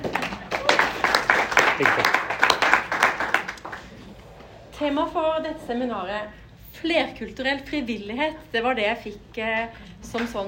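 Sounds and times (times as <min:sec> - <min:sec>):
audience applause: 0:00.0 - 0:04.1
speech: 0:01.8 - 0:02.2, 0:04.8 - 0:10.4.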